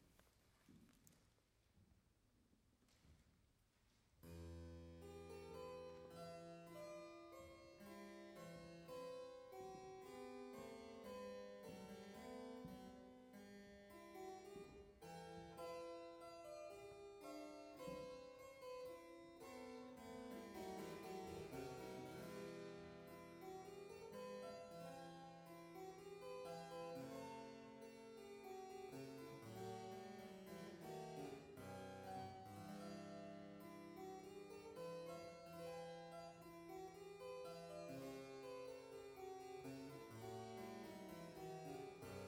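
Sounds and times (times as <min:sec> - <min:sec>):
harpsichord concert performance: 0:04.2 - 0:42.2.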